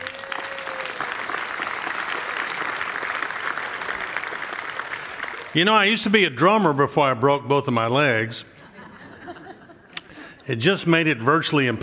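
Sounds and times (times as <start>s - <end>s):
audience applause: 0.0s - 5.6s
speech: 5.5s - 8.5s, 10.5s - 11.8s
laughter: 8.6s - 10.1s.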